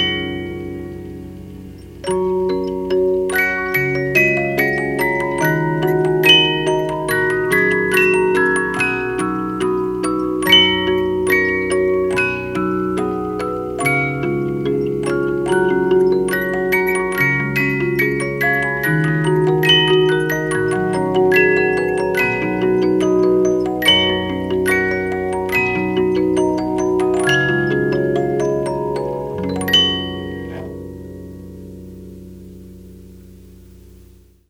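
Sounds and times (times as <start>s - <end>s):
72-note music box movement playing a canon in three parts: 0.0s - 32.5s.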